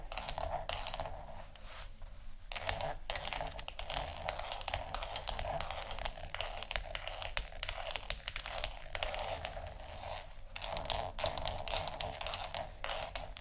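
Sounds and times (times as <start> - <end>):
scratchy tapping: 0.0 - 1.4, 2.5 - 13.4.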